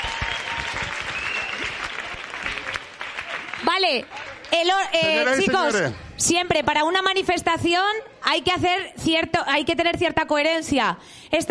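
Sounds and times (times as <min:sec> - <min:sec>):
audience applause: 0:00.0 - 0:05.9
speech: 0:03.6 - 0:11.4.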